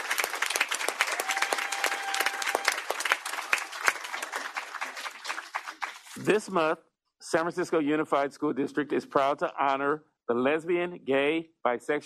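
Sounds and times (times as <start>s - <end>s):
audience applause: 0.0s - 6.2s
speech: 6.2s - 12.0s.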